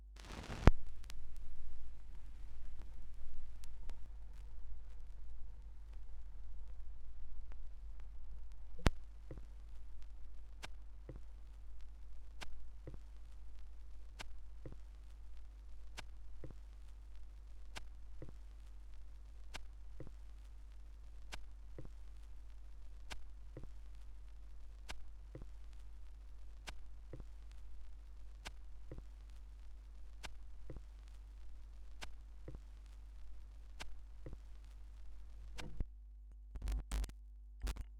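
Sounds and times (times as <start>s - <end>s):
vinyl record noise: 0.2s - 37.9s.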